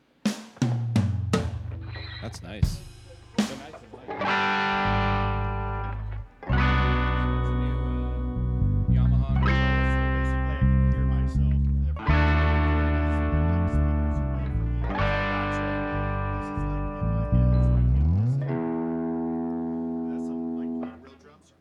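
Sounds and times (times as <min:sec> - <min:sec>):
distorted electric guitar chords played through effects: 0:01.4 - 0:21.2
speech: 0:02.2 - 0:02.9.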